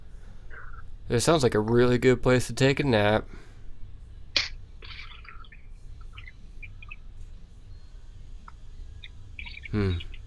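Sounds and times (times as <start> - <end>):
speech: 1.1 - 3.4
birds chirping outdoors: 4.8 - 10.2.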